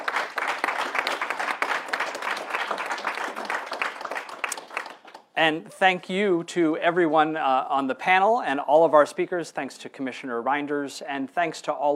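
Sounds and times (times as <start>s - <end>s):
audience applause in Brussels after an ambassador's remarks: 0.0s - 5.2s
speech: 5.4s - 11.9s.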